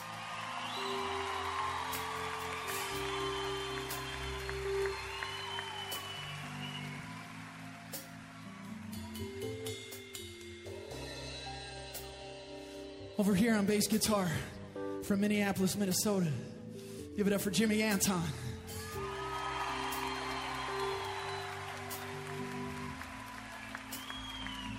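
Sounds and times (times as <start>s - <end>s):
applause and cheering for musicians: 0.0s - 10.2s, 18.7s - 24.7s
speech: 13.2s - 16.6s, 17.2s - 18.5s.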